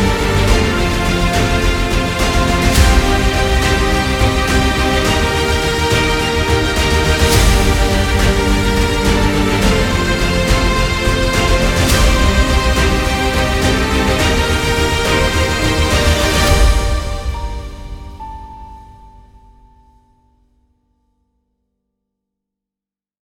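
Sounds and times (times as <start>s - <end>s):
victory jingle: 0.0s - 18.2s.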